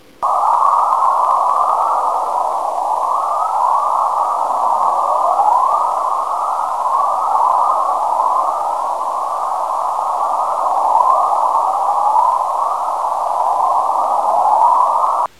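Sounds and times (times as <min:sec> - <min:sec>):
chorus singing: 0:00.0 - 0:15.3.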